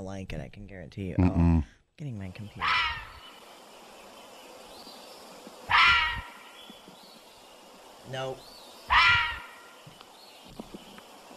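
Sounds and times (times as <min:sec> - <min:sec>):
speech: 0:00.0 - 0:03.0, 0:08.1 - 0:08.6
fisher cat harsh screaming cries: 0:02.6 - 0:03.3, 0:05.7 - 0:06.4, 0:08.9 - 0:09.8.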